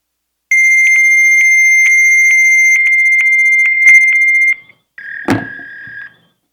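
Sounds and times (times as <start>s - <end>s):
fax machine answer tone over a phone line: 0.5s - 6.4s.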